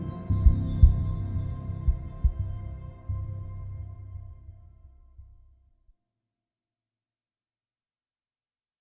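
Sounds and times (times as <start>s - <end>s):
synth drum action strikes: 0.3s - 2.8s.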